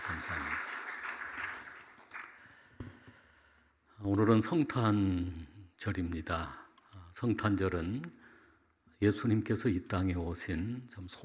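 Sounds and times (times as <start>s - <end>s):
audience applause: 0.0s - 2.5s
speech: 4.0s - 6.6s, 7.2s - 8.2s, 9.0s - 11.2s.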